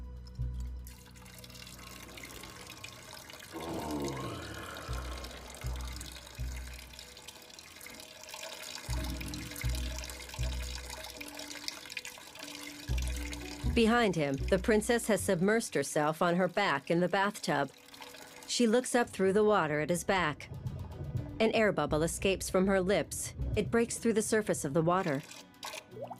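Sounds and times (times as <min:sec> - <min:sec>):
man urinating into a bowl: 0:00.5 - 0:14.6, 0:16.4 - 0:18.5, 0:25.0 - 0:26.1
drips: 0:00.5 - 0:19.1, 0:24.8 - 0:26.1
speech: 0:13.8 - 0:17.8, 0:18.6 - 0:20.5, 0:21.4 - 0:25.4.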